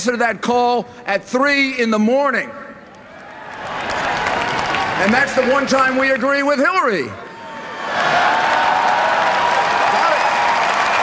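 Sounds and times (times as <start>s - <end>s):
speech: 0.0s - 2.6s, 5.0s - 7.2s
convention audience applause: 3.2s - 6.3s, 7.7s - 11.0s.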